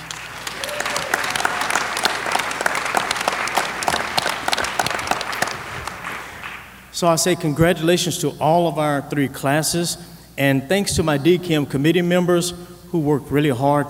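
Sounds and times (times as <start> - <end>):
audience applause: 0.0 - 6.8
speech: 7.0 - 13.8.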